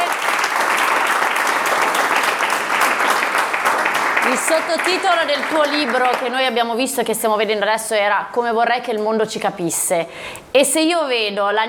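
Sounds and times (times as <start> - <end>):
audience applause: 0.0 - 6.3
speech: 4.4 - 11.6.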